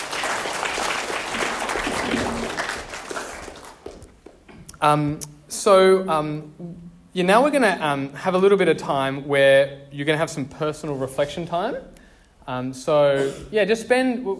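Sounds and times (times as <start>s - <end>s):
audience applause: 0.0s - 4.1s
speech: 4.8s - 11.9s, 12.5s - 14.3s.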